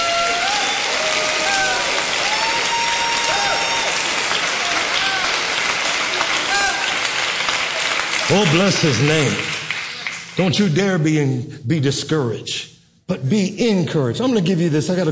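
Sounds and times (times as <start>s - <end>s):
audience clapping hands: 0.0s - 10.7s
speech: 8.3s - 9.5s, 10.4s - 15.0s.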